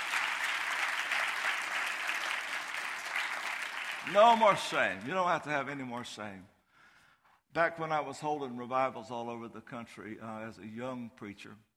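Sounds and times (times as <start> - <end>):
audience clapping: 0.0 - 5.6
speech: 4.0 - 6.5, 7.6 - 11.7.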